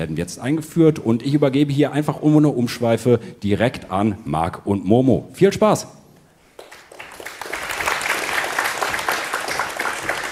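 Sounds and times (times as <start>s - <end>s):
speech: 0.0s - 6.0s
audience applause: 6.6s - 10.3s.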